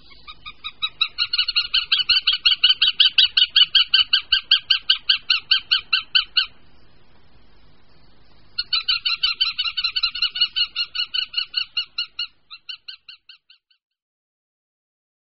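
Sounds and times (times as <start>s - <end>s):
Northern goshawk chattering call: 0.0s - 6.6s, 8.6s - 13.6s.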